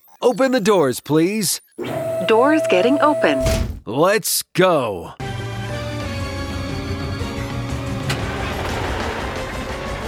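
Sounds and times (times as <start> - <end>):
speech: 0.2 - 5.2
crane truck engine droning while driving: 6.2 - 10.0.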